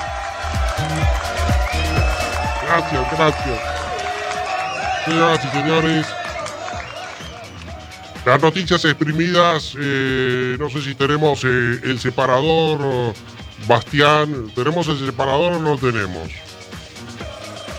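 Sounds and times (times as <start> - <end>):
audience applause: 0.0 - 8.6, 17.2 - 17.7
speech: 2.7 - 3.8, 5.0 - 6.2, 8.2 - 16.5.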